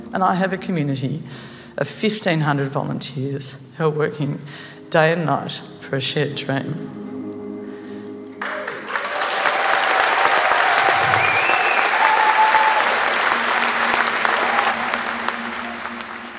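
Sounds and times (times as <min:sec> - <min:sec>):
speech: 0:00.1 - 0:07.2
crowd cheering and applauding: 0:08.4 - 0:16.3.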